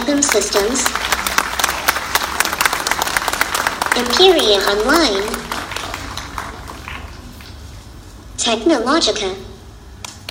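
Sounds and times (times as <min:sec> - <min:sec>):
audience applause at an information technology event: 0:00.0 - 0:07.4
speech: 0:00.1 - 0:01.1, 0:04.0 - 0:05.5, 0:08.4 - 0:09.5.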